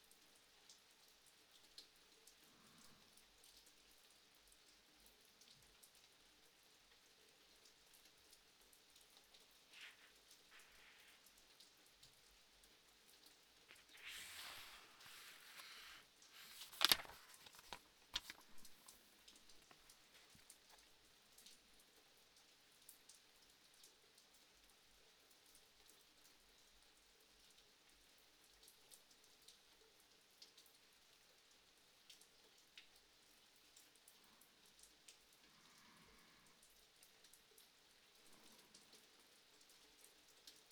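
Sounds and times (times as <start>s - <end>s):
rain: 0.0s - 40.6s
person reading a book: 13.7s - 20.9s.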